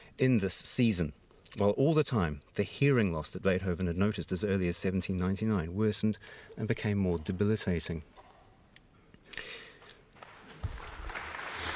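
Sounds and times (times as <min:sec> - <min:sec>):
speech: 0:00.2 - 0:08.2
concert audience applause: 0:10.1 - 0:11.7.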